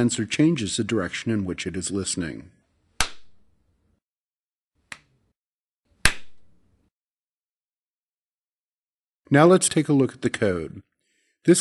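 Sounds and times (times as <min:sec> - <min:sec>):
speech: 0:00.0 - 0:02.6, 0:09.3 - 0:11.5
hand claps: 0:03.0 - 0:03.4, 0:06.0 - 0:06.5.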